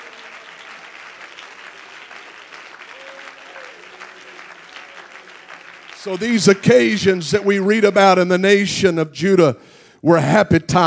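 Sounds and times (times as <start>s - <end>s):
audience clapping hands: 0.0s - 8.2s
speech: 6.0s - 10.8s.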